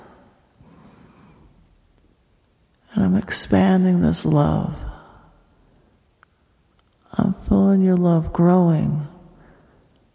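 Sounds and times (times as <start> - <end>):
deep breath in: 0.6 - 1.6
speech: 3.0 - 4.9, 7.8 - 9.1.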